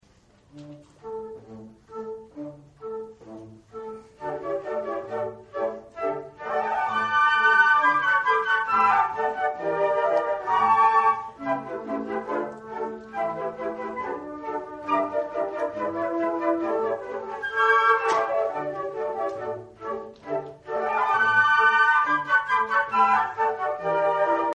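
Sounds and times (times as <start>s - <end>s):
flute in concert: 0.5s - 24.5s.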